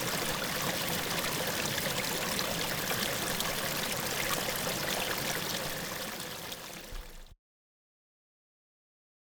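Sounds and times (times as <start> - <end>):
calm small river flow in close perspective: 0.0 - 7.4.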